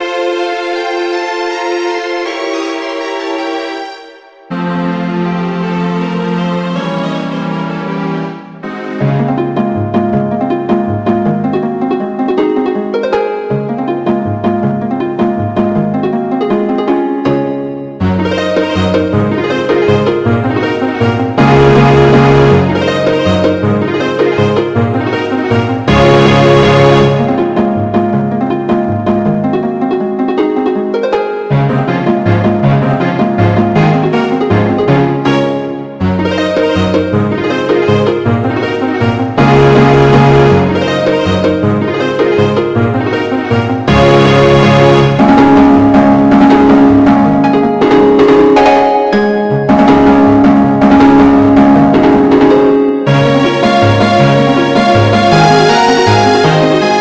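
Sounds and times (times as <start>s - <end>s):
string accompaniment for a seguidilla dance: 0.0s - 56.9s.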